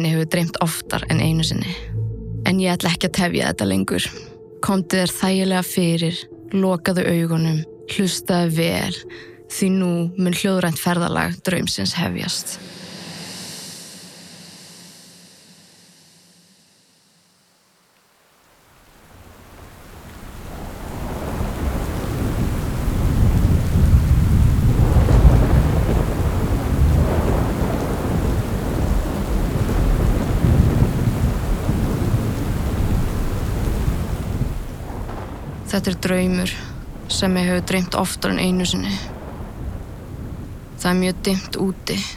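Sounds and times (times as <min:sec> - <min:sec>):
speech: 0:00.0 - 0:01.9, 0:02.5 - 0:12.8, 0:35.8 - 0:39.2, 0:40.8 - 0:42.1
heavy rain: 0:12.6 - 0:14.4, 0:18.0 - 0:42.1
deep thunder rumbling: 0:19.2 - 0:42.1.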